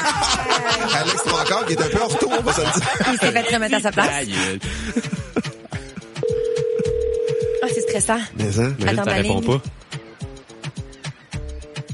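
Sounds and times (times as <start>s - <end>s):
people chattering: 0.0s - 4.6s
laughter: 0.0s - 6.2s
speech: 1.0s - 5.5s, 7.7s - 9.8s
steady clear phone tone: 6.2s - 8.1s.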